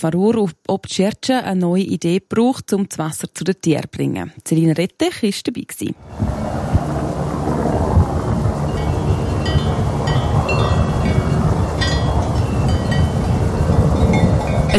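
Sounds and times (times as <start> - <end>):
speech: 0.0 - 6.6
Swiss Helicopter helicopter flying over mountain pasture: 6.0 - 14.7.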